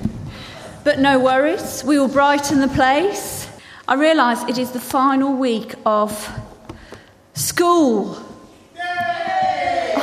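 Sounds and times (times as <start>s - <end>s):
speech: 0.9s - 3.3s, 3.9s - 6.4s, 7.4s - 8.2s
small crowd cheering: 8.8s - 10.0s.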